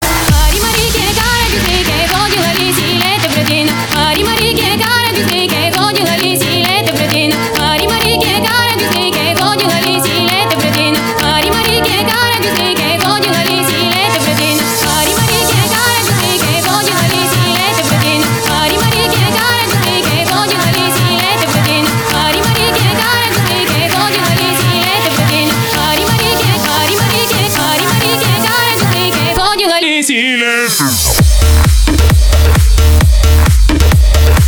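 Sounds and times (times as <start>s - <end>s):
progressive rhythm music: 0.0s - 34.4s.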